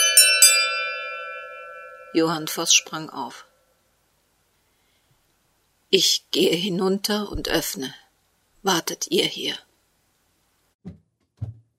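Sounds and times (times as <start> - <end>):
doorbell ringing: 0.0 - 3.0
speech: 2.1 - 3.5, 5.9 - 8.0, 8.6 - 9.7.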